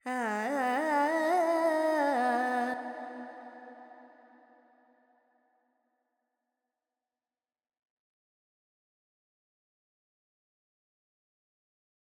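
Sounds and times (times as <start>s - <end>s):
Carnatic woman singing alaps in Phrygian mode: 0.0s - 3.9s.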